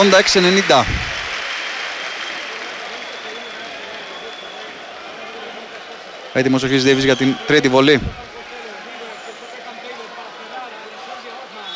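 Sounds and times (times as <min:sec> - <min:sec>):
speech: 0:00.0 - 0:01.1, 0:06.4 - 0:08.3
basketball crowd applauding: 0:00.0 - 0:08.6.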